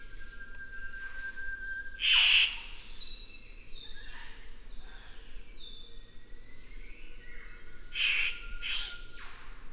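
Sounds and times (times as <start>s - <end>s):
Victoria's riflebird Ptiloris victoriae calling: 2.0s - 2.8s, 7.9s - 9.0s.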